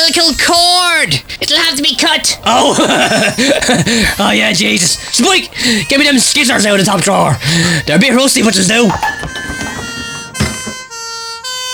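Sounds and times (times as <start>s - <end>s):
speech: 0.1s - 9.7s
laughter: 2.4s - 8.0s
ambulance siren: 8.9s - 11.7s.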